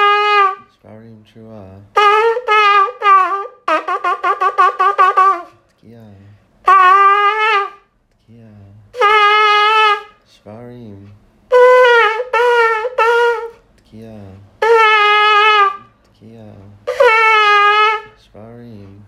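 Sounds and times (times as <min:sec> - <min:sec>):
shofar blast: 0:00.0 - 0:00.7, 0:01.9 - 0:05.6, 0:06.6 - 0:07.9, 0:08.9 - 0:10.2, 0:11.5 - 0:13.6, 0:14.6 - 0:16.0, 0:16.8 - 0:18.3.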